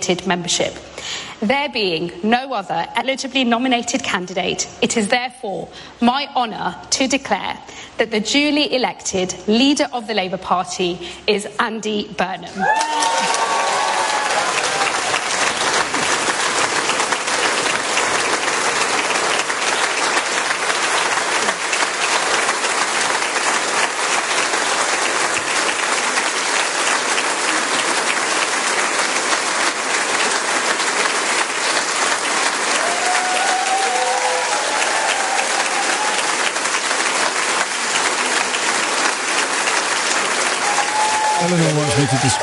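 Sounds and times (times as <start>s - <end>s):
speech: 0.0s - 13.4s, 42.2s - 42.4s
large crowd clapping: 12.6s - 42.4s.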